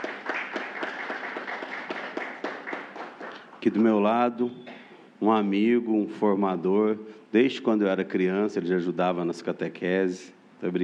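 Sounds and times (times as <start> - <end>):
audience applause: 0.0 - 3.6
speech: 3.6 - 10.8.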